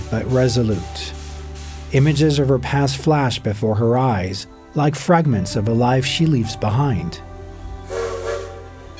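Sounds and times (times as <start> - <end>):
steam hissing: 0.0 - 3.2, 7.9 - 8.9
speech: 0.1 - 1.2, 1.9 - 7.3
steam train whistle: 7.9 - 8.9.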